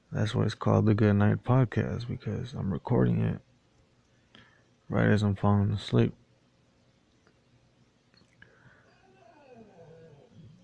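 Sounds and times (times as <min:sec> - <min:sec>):
speech: 0:00.1 - 0:03.5, 0:04.9 - 0:06.2
dog making a drawn-out wavering vocal noise: 0:08.7 - 0:10.6.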